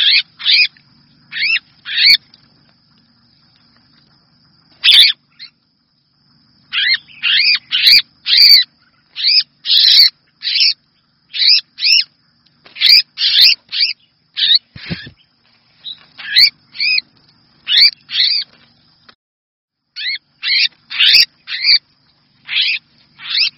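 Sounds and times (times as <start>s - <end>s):
red-whiskered bulbul distress call: 0.0s - 2.3s, 4.7s - 5.6s, 6.6s - 18.6s, 19.9s - 23.5s.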